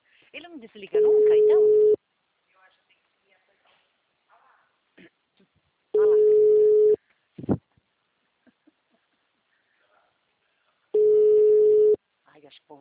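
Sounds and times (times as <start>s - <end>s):
speech: 0.3s - 2.0s
ringback tone of a phone call ringing unanswered: 1.0s - 2.0s, 6.0s - 7.0s, 11.0s - 12.0s.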